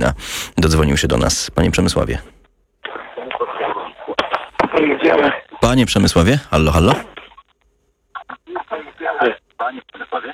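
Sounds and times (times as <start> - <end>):
speech: 0.0 - 2.4, 4.8 - 7.2
radio playing in the background of a phone call: 2.8 - 7.5, 8.1 - 10.3.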